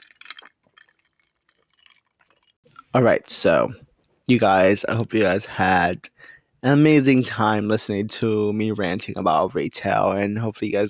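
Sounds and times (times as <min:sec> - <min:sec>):
person sipping coffee from a cup: 0:00.0 - 0:02.8
speech: 0:02.9 - 0:10.8.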